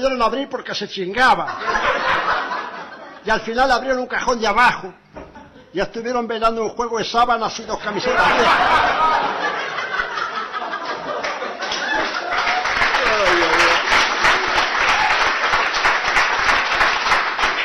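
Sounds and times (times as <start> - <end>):
speech: 0.0 - 2.4, 3.2 - 5.0, 5.7 - 9.8
laughter: 1.5 - 3.3, 5.2 - 5.7, 7.8 - 12.6
audience applause: 11.2 - 17.6.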